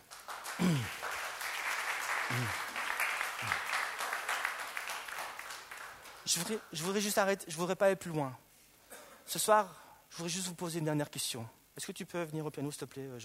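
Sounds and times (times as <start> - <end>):
audience applause: 0.0 - 6.3
speech: 2.3 - 2.6, 6.3 - 8.4, 9.3 - 13.2.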